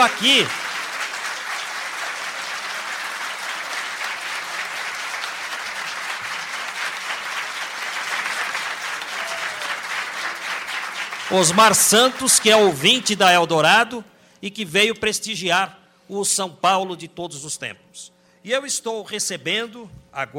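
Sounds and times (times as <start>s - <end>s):
speech: 0.0s - 0.6s, 11.3s - 20.3s
audience applause: 0.0s - 13.3s.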